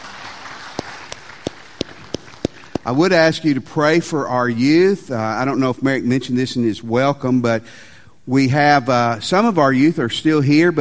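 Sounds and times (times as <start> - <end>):
church congregation applauding the band: 0.0 - 3.3
speech: 2.8 - 10.8.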